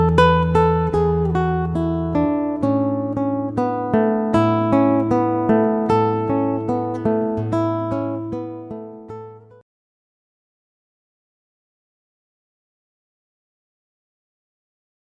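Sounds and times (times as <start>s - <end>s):
solo guitar: 0.0s - 9.6s.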